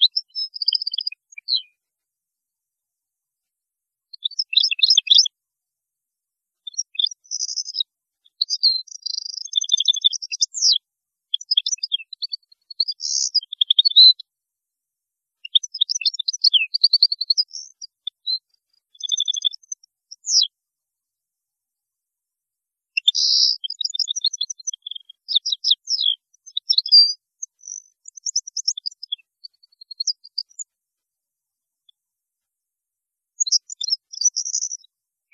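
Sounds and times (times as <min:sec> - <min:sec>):
European goldfinch singing: 0:00.0 - 0:01.8, 0:04.2 - 0:05.3, 0:06.7 - 0:10.8, 0:11.4 - 0:14.1, 0:15.5 - 0:20.5, 0:23.0 - 0:30.7, 0:33.4 - 0:35.3.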